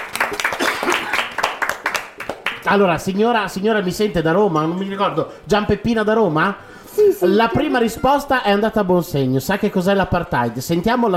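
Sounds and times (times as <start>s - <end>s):
audience applause: 0.0s - 2.6s
speech: 2.6s - 11.1s.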